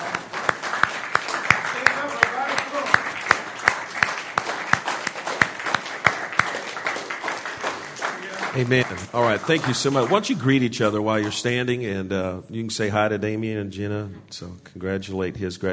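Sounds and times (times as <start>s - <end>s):
audience applause: 0.0s - 11.5s
speech: 8.6s - 15.7s.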